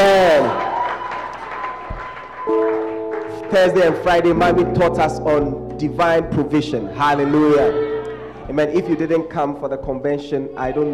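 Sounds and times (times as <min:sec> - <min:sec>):
audience clapping and shouting: 0:00.0 - 0:04.8
low thumps: 0:01.8 - 0:03.1, 0:04.2 - 0:10.9
speech: 0:03.5 - 0:07.9, 0:08.5 - 0:10.9.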